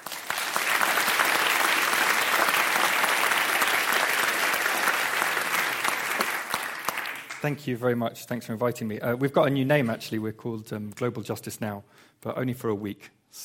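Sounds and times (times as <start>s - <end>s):
audience applauding welcoming a speaker: 0.0s - 7.6s
speech: 7.4s - 13.4s.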